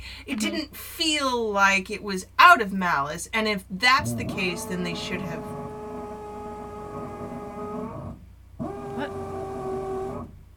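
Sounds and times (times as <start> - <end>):
speech: 0.2 - 5.6
power screwdriver driving something in a neighbouring space: 4.2 - 10.4.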